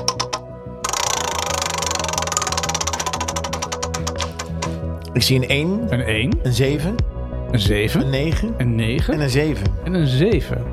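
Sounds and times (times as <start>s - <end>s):
spinning prize wheel clicking: 0.0s - 4.7s
speech: 5.2s - 10.7s.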